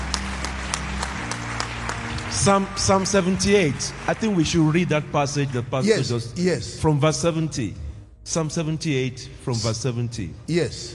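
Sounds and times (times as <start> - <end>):
scattered applause: 0.0 - 5.8
audience clapping in rhythm: 0.0 - 6.2
speech: 2.4 - 10.9.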